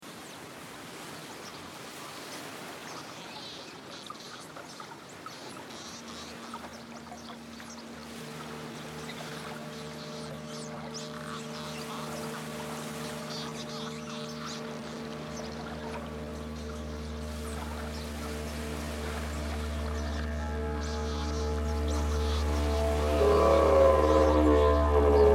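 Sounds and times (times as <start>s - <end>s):
didgeridoo: 7.8s - 25.3s.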